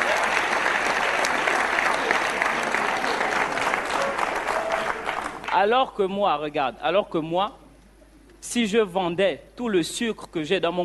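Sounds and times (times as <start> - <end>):
audience applause: 0.0 - 5.6
speech: 5.6 - 7.6, 8.4 - 10.8.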